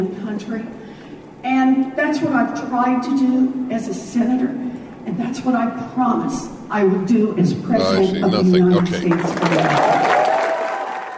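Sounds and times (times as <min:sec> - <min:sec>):
speech: 0:00.4 - 0:00.8, 0:01.4 - 0:10.2
crowd cheering and applauding: 0:09.0 - 0:11.1
whooping: 0:09.3 - 0:11.1.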